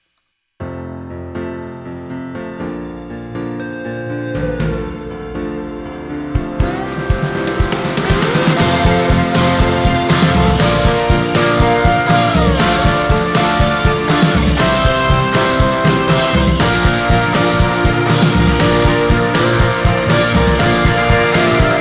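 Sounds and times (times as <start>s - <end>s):
classical music: 0.7s - 21.8s.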